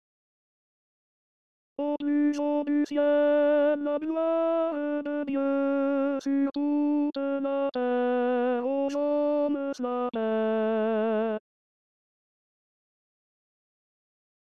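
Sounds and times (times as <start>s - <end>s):
tenor singing: 1.8s - 11.4s.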